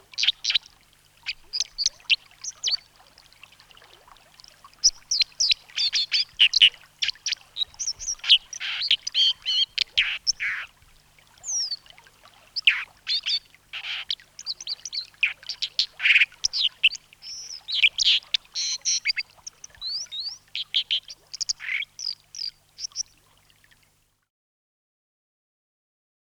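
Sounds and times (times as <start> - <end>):
dipper bird calling: 4.8 - 10.7, 12.6 - 23.1.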